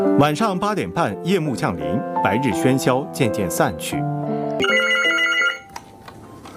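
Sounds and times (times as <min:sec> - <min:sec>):
speech: 0:00.2 - 0:04.8
telephone ringing: 0:04.6 - 0:05.8.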